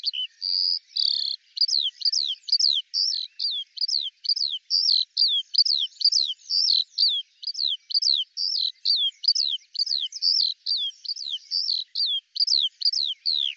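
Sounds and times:
Eurasian skylark singing: 0.0 - 13.5.

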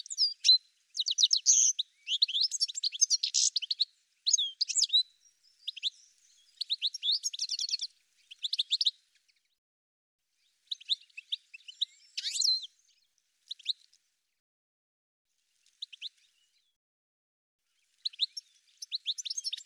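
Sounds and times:
bird calls of high rapid chirps and twittering notes: 0.0 - 9.0, 10.6 - 12.8, 18.0 - 19.6.

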